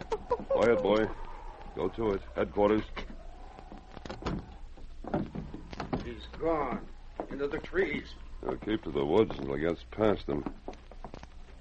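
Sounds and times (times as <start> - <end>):
speech: 0.7 - 1.2, 1.8 - 3.1, 6.2 - 10.6
door opening with thuds and clunks: 4.0 - 7.4.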